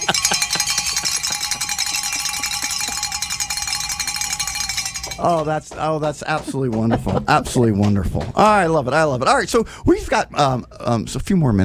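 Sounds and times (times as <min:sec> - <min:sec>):
laughter: 0:00.0 - 0:03.2, 0:06.0 - 0:09.4
large handbell ringing: 0:00.0 - 0:05.7
speech: 0:05.2 - 0:11.6.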